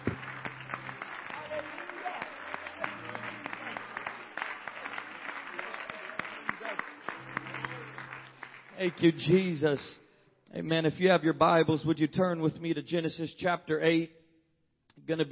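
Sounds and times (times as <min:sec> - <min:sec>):
crowd applause: 0:00.0 - 0:09.5
speech: 0:08.8 - 0:14.2, 0:15.1 - 0:15.3.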